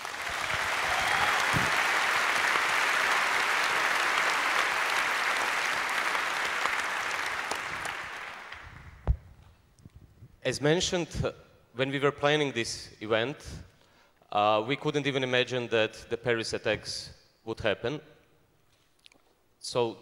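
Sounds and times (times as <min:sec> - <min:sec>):
audience applause: 0:00.0 - 0:08.9
speech: 0:10.5 - 0:13.7, 0:14.3 - 0:18.1, 0:19.6 - 0:20.0.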